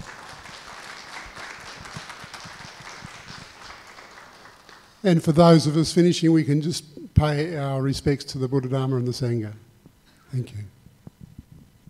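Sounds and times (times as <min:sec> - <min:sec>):
audience applause: 0:00.0 - 0:05.0
speech: 0:05.0 - 0:09.6, 0:10.3 - 0:10.8.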